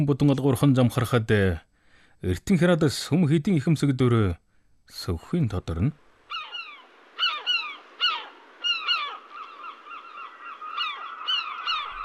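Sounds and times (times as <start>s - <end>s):
speech: 0.0s - 6.0s
faint steady tone: 0.0s - 12.0s
swans honking as they fly away: 6.3s - 12.0s.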